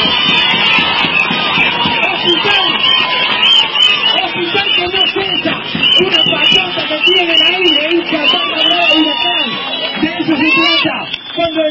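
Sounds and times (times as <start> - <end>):
crowd applause: 0.0 - 11.6.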